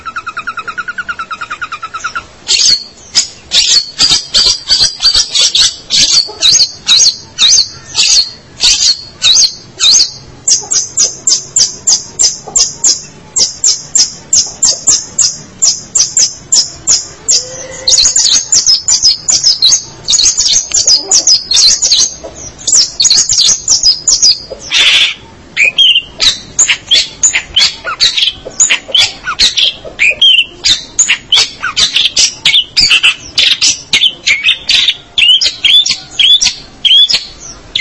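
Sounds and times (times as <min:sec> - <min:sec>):
long-tailed shrike scratchy song: 0:00.0 - 0:37.8.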